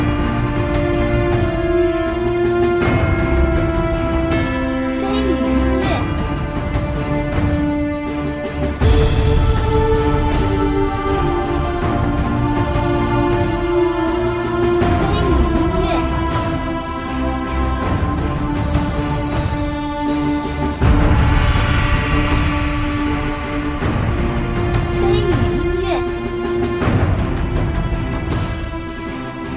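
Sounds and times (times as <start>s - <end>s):
grand epic boss music: 0.0s - 29.5s.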